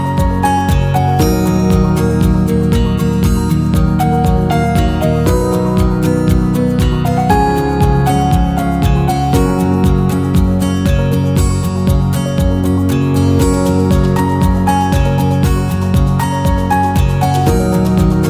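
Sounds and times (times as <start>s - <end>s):
guitar: 0.0s - 18.2s
piano: 0.0s - 18.2s.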